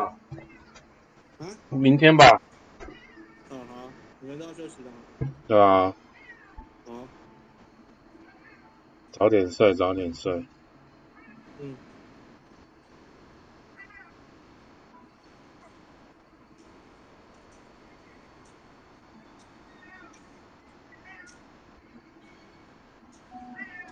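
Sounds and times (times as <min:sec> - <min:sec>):
speech: 0:01.4 - 0:02.5, 0:04.2 - 0:06.0, 0:09.2 - 0:10.6, 0:11.6 - 0:11.9
cat meowing: 0:06.1 - 0:06.6, 0:08.2 - 0:08.7, 0:13.8 - 0:14.2, 0:19.7 - 0:20.2, 0:21.0 - 0:21.4, 0:23.4 - 0:23.9.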